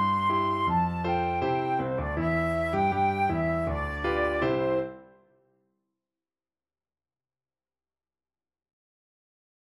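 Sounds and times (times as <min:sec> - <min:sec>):
flute melody: 0:00.0 - 0:05.2.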